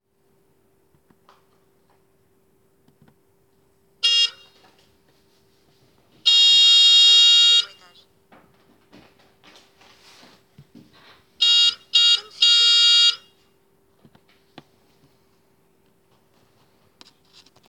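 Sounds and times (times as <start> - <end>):
Mehari klaxon: 4.0 - 4.7, 6.2 - 8.0, 11.4 - 13.4.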